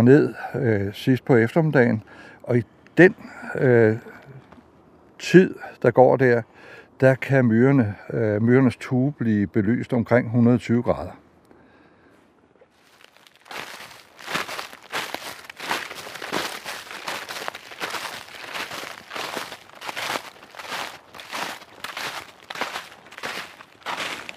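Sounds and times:
speech: 0:00.0 - 0:04.1, 0:05.2 - 0:11.2
footsteps on frozen fallen leaves on a deciduous forest floor: 0:12.8 - 0:24.3.

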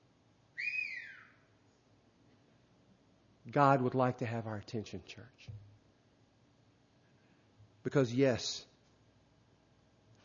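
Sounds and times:
whistle: 0:00.6 - 0:01.5
speech: 0:03.4 - 0:05.7, 0:07.8 - 0:08.7.

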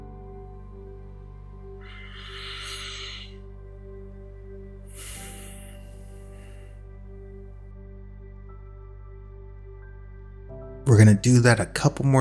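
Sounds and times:
deep breath during a guided relaxation exercise: 0:01.8 - 0:03.6, 0:04.7 - 0:07.3
speech: 0:10.9 - 0:12.1.

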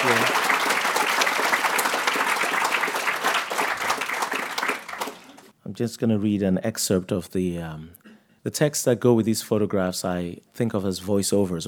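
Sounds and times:
audience applause: 0:00.0 - 0:05.5
speech: 0:05.8 - 0:11.6.

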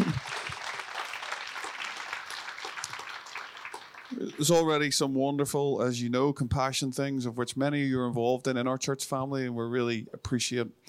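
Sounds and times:
audience applause: 0:00.0 - 0:04.8
speech: 0:04.2 - 0:10.8.

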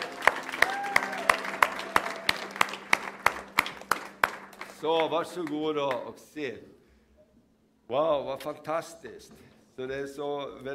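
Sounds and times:
audience clapping in a steady rhythm: 0:00.0 - 0:06.2
speech: 0:04.8 - 0:06.8, 0:07.9 - 0:10.7.

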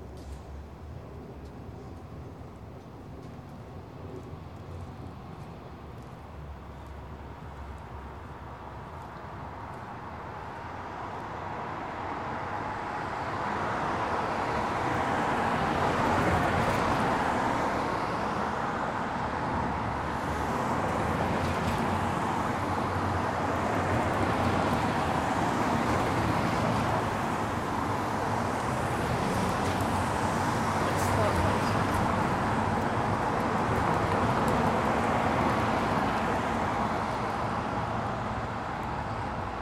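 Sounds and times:
light car traffic passing a storefront in Clinton Hill: 0:03.8 - 0:39.6.

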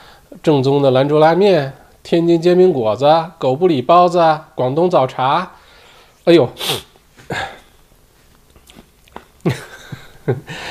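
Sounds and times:
faint breathing: 0:00.0 - 0:00.3, 0:05.6 - 0:06.2, 0:09.9 - 0:10.6
speech: 0:00.3 - 0:05.6, 0:06.2 - 0:07.6, 0:10.3 - 0:10.6
person swallowing saliva: 0:08.5 - 0:09.4.

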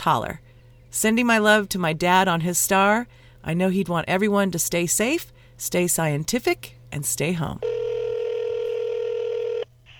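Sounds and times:
speech: 0:00.0 - 0:07.8
faint low hum: 0:00.0 - 0:09.9
telephone dialing tone: 0:07.6 - 0:09.9.

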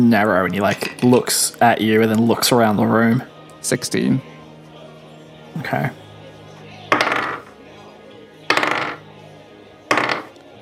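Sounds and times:
speech: 0:00.0 - 0:04.3, 0:05.6 - 0:06.0
many dice rolling: 0:06.9 - 0:07.5, 0:08.5 - 0:09.0, 0:09.9 - 0:10.4.

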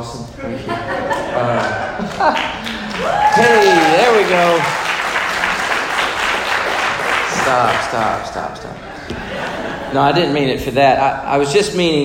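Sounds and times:
laughter: 0:00.4 - 0:04.8, 0:07.3 - 0:10.4
audience applause: 0:01.4 - 0:08.5
speech: 0:07.5 - 0:08.9, 0:09.9 - 0:12.0.

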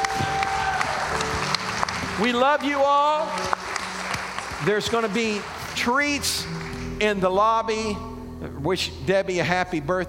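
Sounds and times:
audience applause: 0:00.0 - 0:06.9
speech: 0:02.2 - 0:03.6, 0:04.6 - 0:10.0.

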